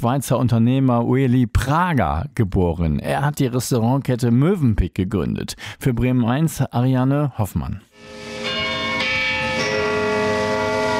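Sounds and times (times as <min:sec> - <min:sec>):
speech: 0:00.0 - 0:08.3
church tower bell striking at noon: 0:08.0 - 0:10.9.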